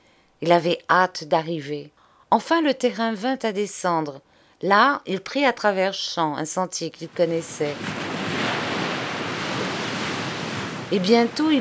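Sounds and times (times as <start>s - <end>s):
speech: 0.4s - 8.0s, 10.9s - 11.5s
sea waves breaking on the shore: 7.1s - 11.5s.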